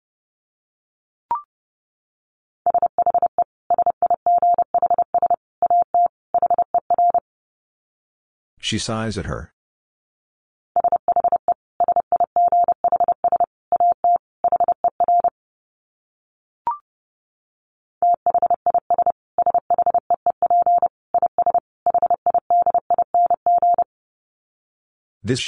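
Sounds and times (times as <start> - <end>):
Morse code tones at 30 wpm: 2.7 - 7.2, 10.8 - 15.3, 18.0 - 23.9
speech: 8.6 - 9.6, 25.3 - 25.4.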